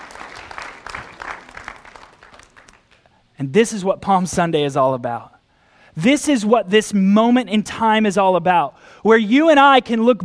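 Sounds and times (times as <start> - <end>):
audience clapping: 0.0 - 3.1
speech: 3.4 - 5.3, 6.0 - 10.2.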